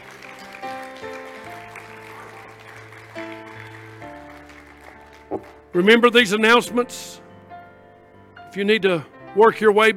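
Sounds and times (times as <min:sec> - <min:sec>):
crowd applause: 0:00.0 - 0:05.8
speech: 0:05.3 - 0:07.2, 0:08.5 - 0:09.9.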